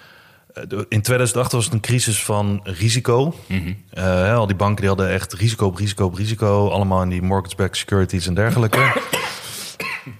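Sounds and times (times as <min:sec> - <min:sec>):
speech: 0:00.6 - 0:09.2
harsh raspy cough: 0:08.5 - 0:10.1.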